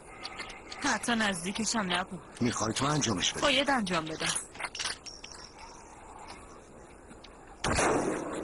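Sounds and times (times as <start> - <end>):
speech: 0.9 - 4.5
gunfire from a sniping exchange: 7.6 - 8.4.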